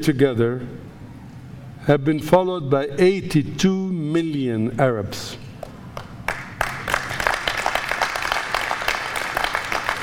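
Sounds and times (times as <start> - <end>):
speech: 0.0 - 0.9, 1.8 - 5.4
audience clapping: 5.6 - 10.0.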